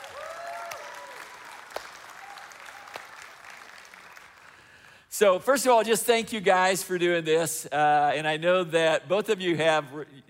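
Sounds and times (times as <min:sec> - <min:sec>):
audience applause in a church: 0:00.0 - 0:04.9
speech: 0:05.2 - 0:10.2.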